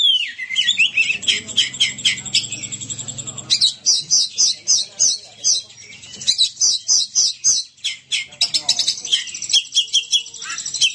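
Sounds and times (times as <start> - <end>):
Oriental magpie-robin whistling and chattering: 0.0 - 10.9.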